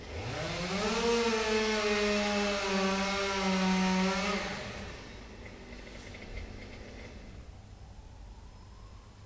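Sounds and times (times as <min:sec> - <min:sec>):
chainsaw: 0:00.0 - 0:07.3.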